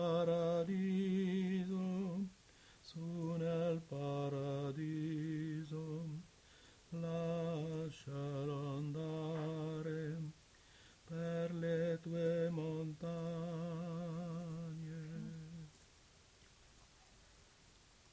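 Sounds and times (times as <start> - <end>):
alto voice singing: 0.0 - 6.3, 6.9 - 10.4, 11.1 - 15.8.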